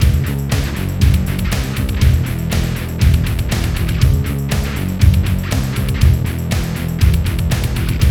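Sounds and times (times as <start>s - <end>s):
heavy rock music: 0.0s - 8.0s.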